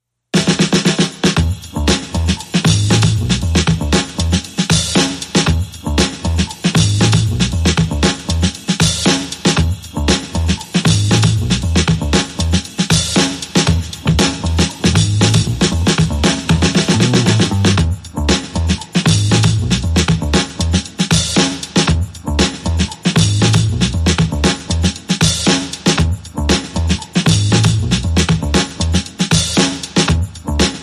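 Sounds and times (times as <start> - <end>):
drums: 0.3 - 30.8
bass: 1.2 - 30.8.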